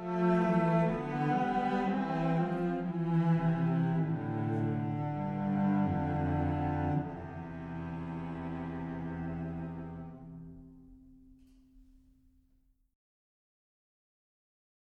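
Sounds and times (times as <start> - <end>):
cellos playing a chorale: 0.0 - 11.3.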